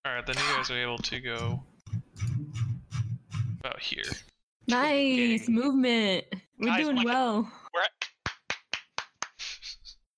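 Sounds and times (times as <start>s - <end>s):
speech: 0.2s - 2.6s, 3.6s - 7.9s
person clapping hands: 8.0s - 9.4s.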